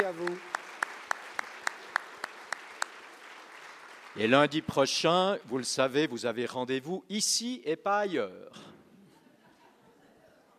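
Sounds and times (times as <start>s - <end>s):
speech: 0.0s - 0.5s, 4.2s - 8.7s
audience applause: 0.0s - 4.8s.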